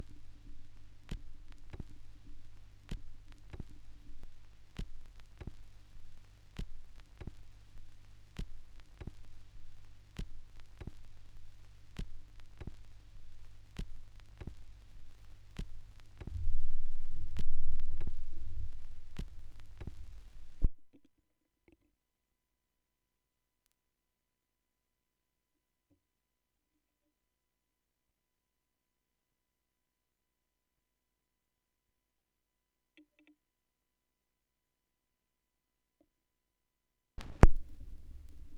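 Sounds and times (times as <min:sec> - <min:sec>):
vinyl record noise: 0:00.0 - 0:20.9, 0:37.2 - 0:38.5.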